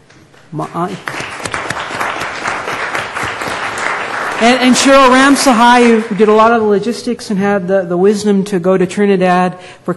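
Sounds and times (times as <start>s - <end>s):
speech: 0.5s - 1.2s, 4.4s - 9.9s
audience applause for event helpers: 1.0s - 6.2s.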